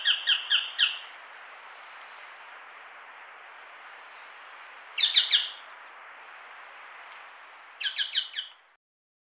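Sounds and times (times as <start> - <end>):
Choco Tapaculo: 0.0 - 1.1, 5.0 - 5.6, 7.8 - 8.6.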